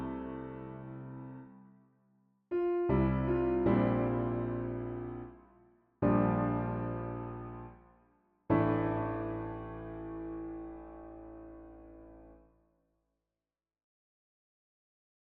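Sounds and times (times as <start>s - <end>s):
piano prelude: 0.0s - 1.6s, 2.5s - 12.4s.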